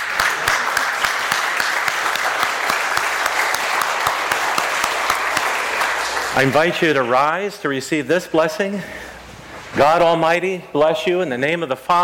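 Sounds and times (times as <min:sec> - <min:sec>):
audience applauding: 0:00.0 - 0:07.3
speech: 0:06.4 - 0:09.1, 0:09.8 - 0:12.0.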